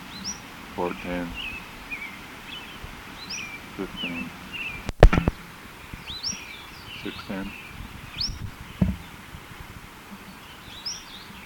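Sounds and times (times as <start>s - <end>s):
bird chirping: 0.0s - 9.3s, 10.2s - 11.4s
speech: 0.8s - 1.4s, 3.8s - 4.4s, 7.0s - 7.6s
low thump: 4.9s - 5.4s, 8.8s - 9.2s.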